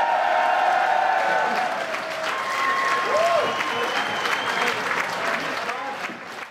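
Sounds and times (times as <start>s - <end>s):
applause in a beer festival tent: 0.1s - 6.4s.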